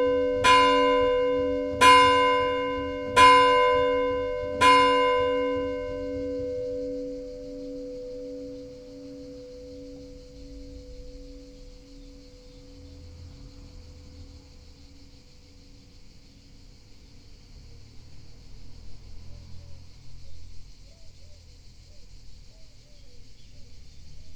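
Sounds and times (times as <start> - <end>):
church bells at noon: 0.0 - 14.8.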